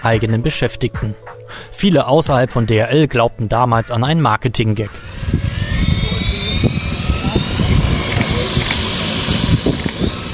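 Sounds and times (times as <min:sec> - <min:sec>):
speech: 0:00.0 - 0:05.3
yellow DHL delivery drone rotors whirring over the Rhine in Bonn: 0:04.8 - 0:10.3.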